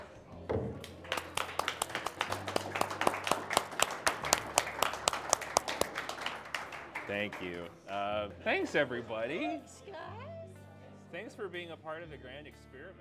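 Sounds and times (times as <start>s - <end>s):
round of applause: 0.8s - 7.8s
speech: 7.1s - 10.2s, 11.1s - 13.0s.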